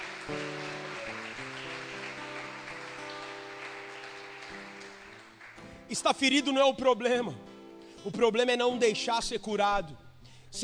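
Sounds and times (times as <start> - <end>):
crowd applause: 0.0 - 5.8
speech: 5.9 - 10.6.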